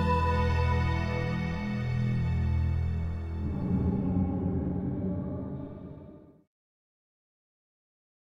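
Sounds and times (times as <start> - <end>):
spooky elf forest music: 0.0 - 6.3.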